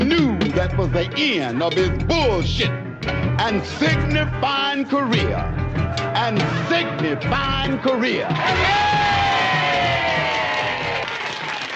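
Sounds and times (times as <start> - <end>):
speech: 0.8 - 9.2
big crowd cheering wildly: 5.7 - 11.7
high sustained screams: 8.3 - 11.1.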